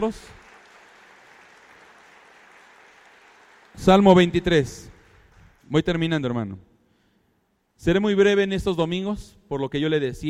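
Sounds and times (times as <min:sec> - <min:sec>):
speech: 0:00.0 - 0:00.4, 0:03.8 - 0:04.9, 0:05.7 - 0:06.7, 0:07.8 - 0:10.2
crowd clapping: 0:00.0 - 0:06.0.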